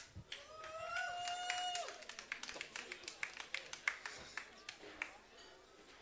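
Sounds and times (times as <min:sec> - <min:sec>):
audience applause: 0:00.0 - 0:05.2.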